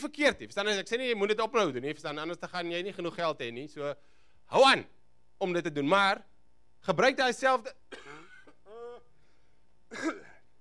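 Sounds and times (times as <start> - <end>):
speech: 0.0 - 8.2, 9.9 - 10.3
person coughing up phlegm while recovering from an illness: 7.9 - 9.1, 9.9 - 10.5.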